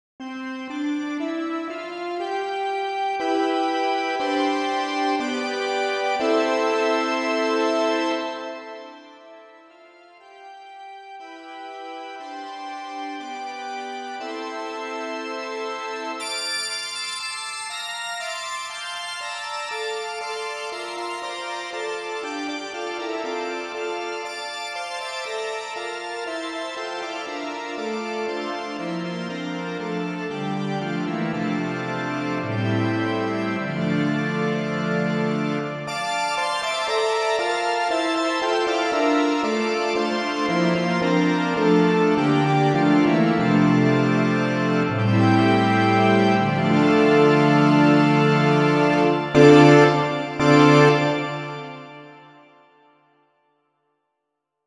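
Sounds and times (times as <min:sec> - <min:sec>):
analog orchestral cathedral organ synth bright: 0:00.2 - 0:52.8.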